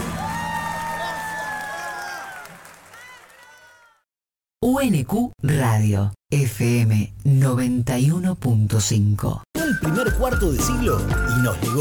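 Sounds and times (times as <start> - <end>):
audience applause and cheering: 0.0 - 4.0
whistles and whoops: 0.2 - 3.8
speech: 4.8 - 11.7.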